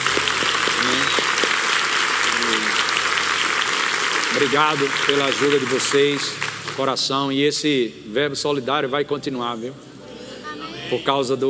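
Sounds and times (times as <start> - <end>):
applause: 0.0 - 7.4
speech: 4.4 - 9.9, 10.9 - 11.4.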